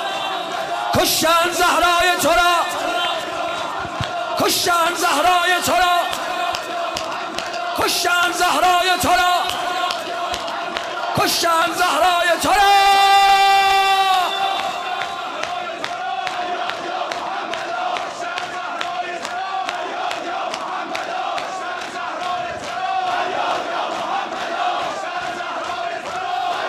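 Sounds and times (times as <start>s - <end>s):
crowd shouting in unison: 0.0s - 26.6s
speech: 1.0s - 3.0s, 4.4s - 5.9s, 7.8s - 9.4s, 11.2s - 12.9s.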